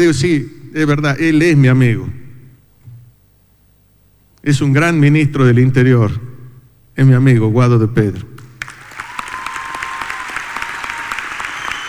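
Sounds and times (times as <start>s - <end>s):
speech: 0.0s - 2.2s, 4.4s - 6.3s, 7.0s - 8.3s
crowd applause: 8.6s - 11.8s.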